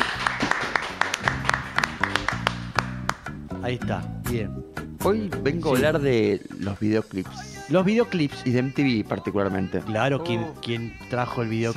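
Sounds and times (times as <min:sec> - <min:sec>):
small round of applause: 0:00.0 - 0:03.2
speech: 0:03.7 - 0:11.7.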